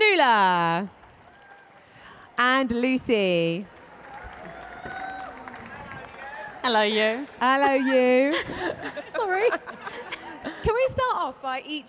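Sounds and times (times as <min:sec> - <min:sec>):
speech: 0:00.2 - 0:01.0, 0:02.6 - 0:03.8, 0:06.6 - 0:10.1, 0:10.7 - 0:11.8
audience applause: 0:03.7 - 0:07.4
laughter: 0:07.4 - 0:10.8.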